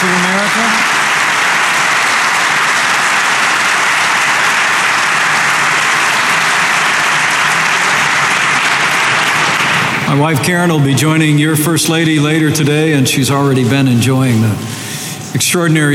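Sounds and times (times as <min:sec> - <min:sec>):
large audience applause: 0:00.0 - 0:10.7
speech: 0:10.2 - 0:15.9.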